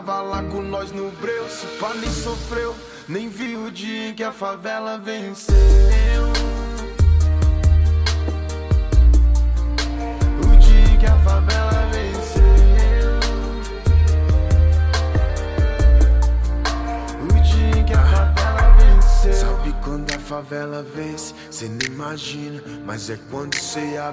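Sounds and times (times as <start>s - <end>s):
deep bass: 5.5s - 20.3s.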